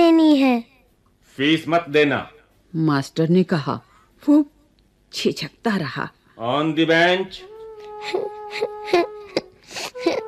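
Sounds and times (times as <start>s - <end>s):
speech: 1.4s - 10.2s
boy sobbing on a school bench: 7.8s - 10.2s.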